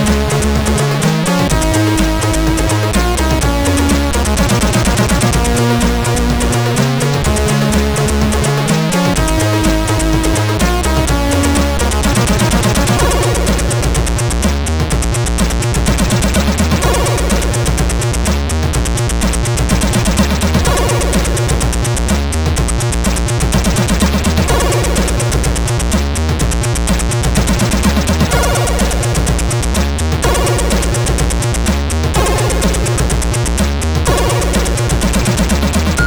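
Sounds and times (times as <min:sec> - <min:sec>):
noise from a SID CSG8580R5 sound chip: 0:00.0 - 0:36.0.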